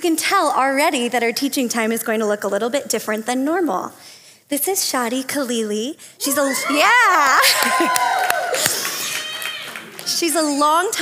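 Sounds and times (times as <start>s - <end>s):
speech: 0.0s - 8.8s, 10.1s - 10.9s
rising whoop and overlapping high shouts and yells: 6.2s - 9.8s
audience cheering: 6.4s - 10.2s.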